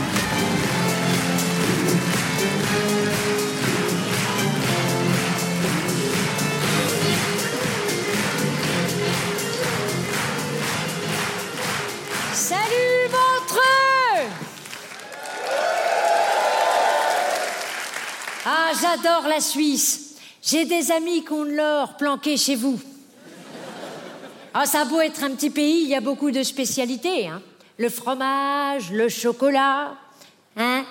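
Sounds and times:
audience applause: 0:00.0 - 0:13.6, 0:14.3 - 0:18.4
speech: 0:19.0 - 0:22.9, 0:24.5 - 0:30.0, 0:30.6 - 0:30.8
laughter: 0:23.2 - 0:24.5.

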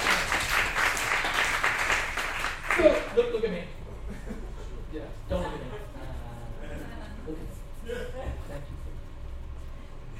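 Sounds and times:
small smattering of audience applause: 0:00.0 - 0:03.1
speech: 0:02.8 - 0:03.8
laughter: 0:04.0 - 0:08.9.

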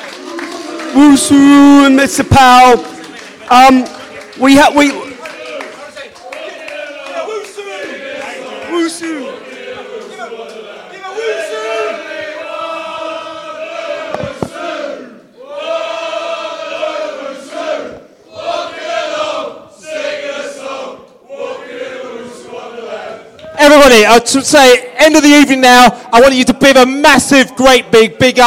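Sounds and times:
audience applause: 0:00.0 - 0:11.9
audience cheering: 0:00.0 - 0:16.2
speech: 0:00.9 - 0:02.9, 0:03.5 - 0:05.0, 0:24.1 - 0:28.4.

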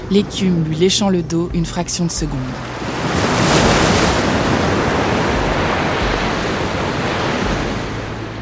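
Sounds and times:
speech: 0:00.1 - 0:02.9
giant ocean wave crashing: 0:02.5 - 0:08.3.

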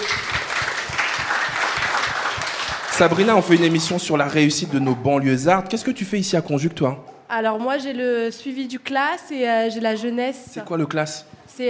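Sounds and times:
audience applause: 0:00.0 - 0:04.6
speech: 0:03.0 - 0:11.6.

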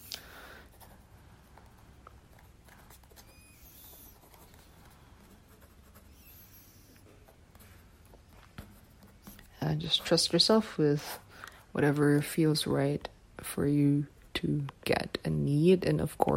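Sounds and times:
pen or pencil writing by hand: 0:00.7 - 0:10.7
speech: 0:09.7 - 0:11.2, 0:11.8 - 0:16.3.

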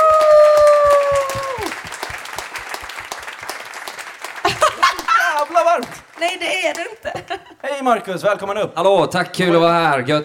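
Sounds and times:
live audience applause: 0:00.0 - 0:07.1
laughter: 0:04.4 - 0:05.5, 0:06.9 - 0:07.6
speech: 0:05.8 - 0:10.2.

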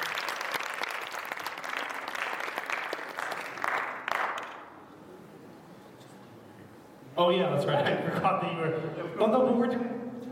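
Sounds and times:
crowd applause: 0:00.0 - 0:04.7
speech: 0:07.2 - 0:09.9.

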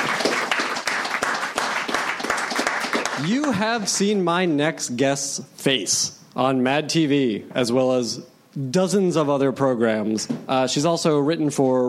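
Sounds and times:
audience applause: 0:00.0 - 0:03.8
speech: 0:03.2 - 0:11.8.

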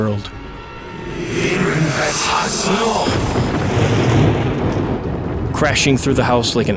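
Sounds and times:
speech: 0:00.0 - 0:00.4, 0:01.4 - 0:04.2, 0:05.6 - 0:06.7
loud crack of a lightning strike: 0:01.9 - 0:06.1.

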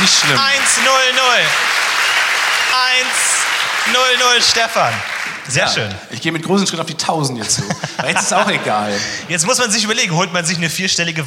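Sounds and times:
applause: 0:00.0 - 0:06.0
speech: 0:00.2 - 0:01.7, 0:02.8 - 0:11.2
laughter: 0:07.4 - 0:10.2.

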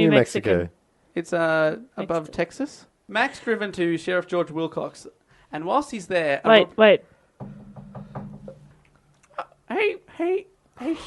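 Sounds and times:
speech: 0:00.1 - 0:07.6, 0:09.7 - 0:11.0
knocking on a door: 0:07.4 - 0:08.8.

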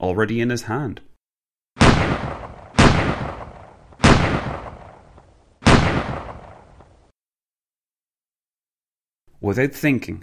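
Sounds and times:
speech: 0:00.0 - 0:01.1, 0:09.4 - 0:10.2
Colt 1911 pistol shots: 0:01.8 - 0:07.0.

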